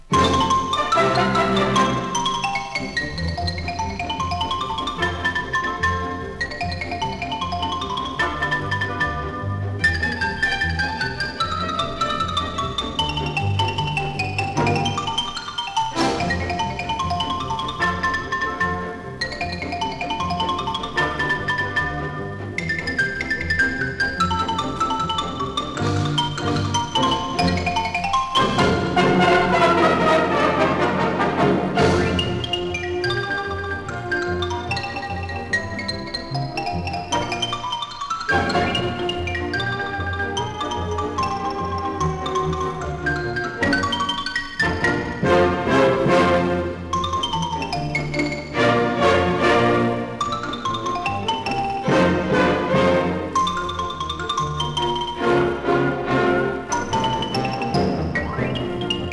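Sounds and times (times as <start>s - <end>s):
xylophone: 0.0s - 59.1s.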